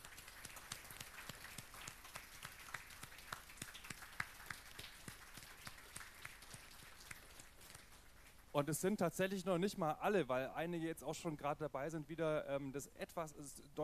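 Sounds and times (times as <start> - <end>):
audience applause for volunteer helpers: 0.0 - 8.3
speech: 8.6 - 13.8.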